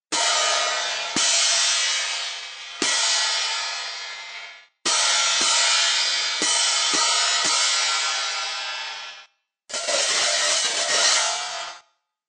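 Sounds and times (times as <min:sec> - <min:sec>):
cymbals: 0:00.1 - 0:11.8.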